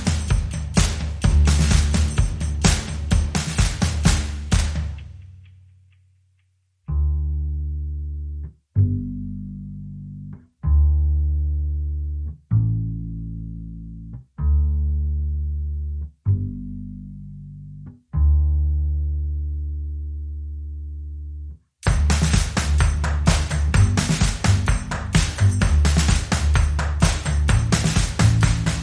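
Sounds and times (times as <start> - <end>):
drums: 0.0 - 5.2, 21.8 - 28.8
bass: 0.0 - 28.8.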